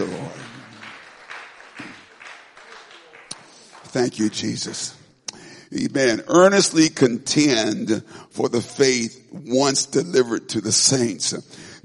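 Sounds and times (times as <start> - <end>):
church congregation rhythmic hand clapping during worship: 0.0 - 5.0
speech: 3.9 - 5.0, 5.7 - 11.8.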